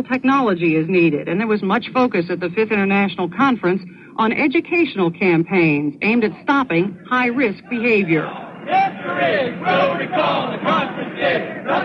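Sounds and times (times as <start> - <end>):
speech: 0.0 - 11.8
protesters and activists shouting demands: 7.6 - 11.8.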